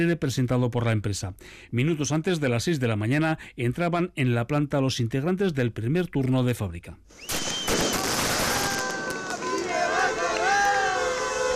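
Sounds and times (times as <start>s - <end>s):
speech: 0.0s - 7.7s
people shouting and cheering: 7.7s - 11.5s
outdoor crowd clapping: 7.9s - 11.5s.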